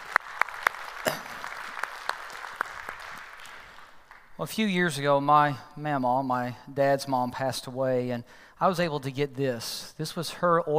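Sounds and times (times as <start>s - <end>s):
church congregation applauding to welcome visitors: 0.0s - 4.5s
speech: 4.4s - 10.7s.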